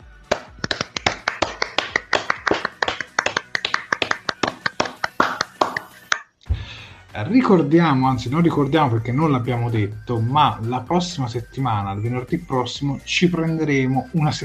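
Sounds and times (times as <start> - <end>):
hands clapping: 0.0 - 6.3
speech: 7.2 - 14.4.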